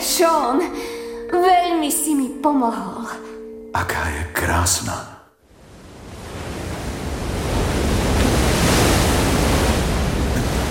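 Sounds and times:
speech: 0.2s - 5.2s
waves crashing against rocks: 5.5s - 10.6s.

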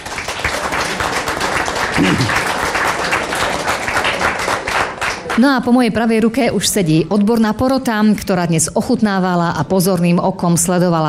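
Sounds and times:
audience applause: 0.0s - 5.5s
low voice murmur: 0.4s - 3.7s
speech: 5.4s - 11.0s.

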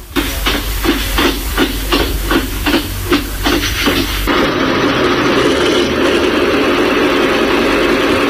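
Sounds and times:
original locomotive engine start sound played at the push of a button: 0.0s - 8.2s.

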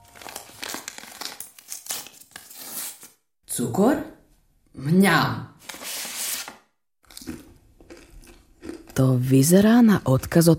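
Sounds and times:
pale blue paper envelope being handled at a kitchen counter: 0.0s - 3.2s, 5.6s - 6.6s
speech: 3.6s - 4.1s, 4.8s - 5.4s, 9.0s - 10.5s.

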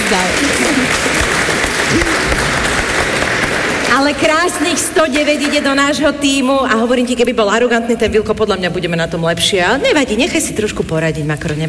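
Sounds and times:
applause: 0.0s - 5.9s
speech: 0.1s - 2.6s, 3.9s - 11.6s.

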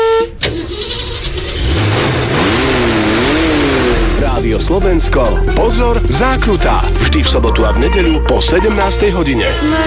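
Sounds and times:
car horn honk: 0.0s - 1.4s
V8 car engine revving: 0.4s - 7.0s
speech: 4.7s - 9.8s.

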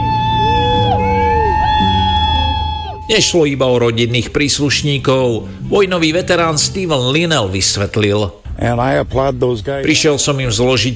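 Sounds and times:
sustained horn-like tones: 0.0s - 3.2s
large crowd cheering and shouting at a ship homecoming: 0.0s - 3.3s
speech: 3.1s - 10.9s.

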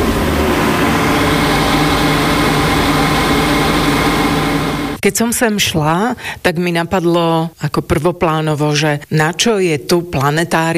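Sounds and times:
planetarium vacuum pump: 0.0s - 5.0s
planetarium ventilation fan: 0.0s - 5.1s
speech: 5.0s - 10.7s.

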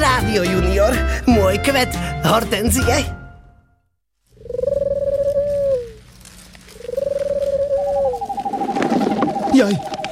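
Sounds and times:
speech: 0.3s - 3.2s, 9.6s - 10.0s
owl call: 4.4s - 6.0s, 6.7s - 10.1s.

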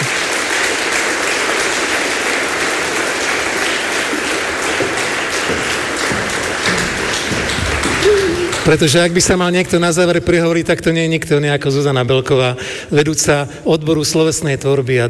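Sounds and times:
crowd applause: 0.0s - 9.4s
speech: 8.7s - 15.0s.

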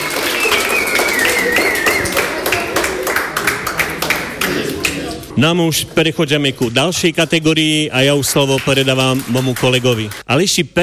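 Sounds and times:
audience applause: 0.0s - 5.3s, 8.4s - 10.2s
speech: 5.4s - 10.8s.

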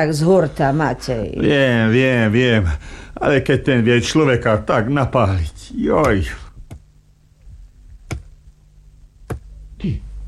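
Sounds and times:
speech: 0.0s - 6.4s, 9.8s - 10.1s
axe chopping wood: 8.1s - 8.3s, 9.3s - 9.5s.

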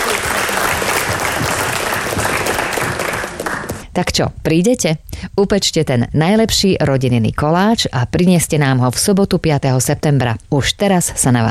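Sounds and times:
audience applause: 0.0s - 3.8s
speech: 4.0s - 11.4s.

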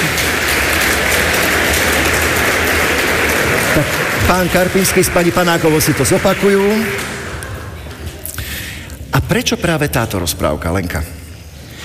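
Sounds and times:
audience applause: 0.0s - 8.4s
speech: 3.8s - 7.1s, 9.3s - 11.2s.

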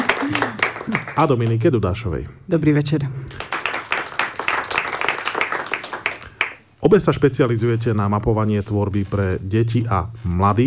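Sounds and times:
audience applause in a garden: 0.0s - 1.6s, 3.3s - 6.6s
speech: 0.3s - 3.4s, 6.8s - 10.6s.

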